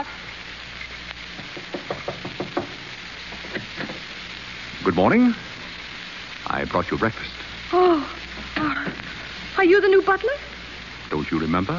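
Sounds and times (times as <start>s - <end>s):
knocking on a door: 1.4s - 2.8s
speech: 4.9s - 5.4s, 6.5s - 8.2s, 9.6s - 10.5s, 11.1s - 11.7s.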